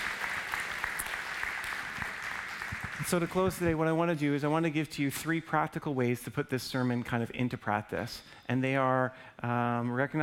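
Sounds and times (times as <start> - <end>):
audience applause at a morning church service: 0.0 - 3.6
speech: 3.1 - 10.2.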